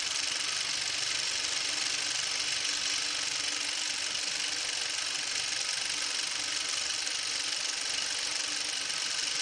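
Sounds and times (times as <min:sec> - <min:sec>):
projector running: 0:00.0 - 0:09.4.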